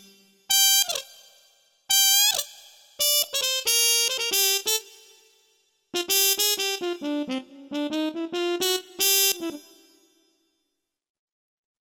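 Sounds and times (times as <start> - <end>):
muted trumpet: 0.0 - 1.1, 1.9 - 5.1, 6.0 - 9.8.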